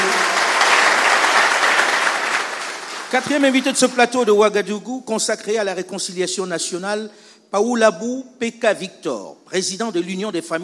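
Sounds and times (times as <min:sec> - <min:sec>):
studio audience on a Ouagadougou television set applauding a guest: 0:00.0 - 0:04.4
speech: 0:03.1 - 0:10.6.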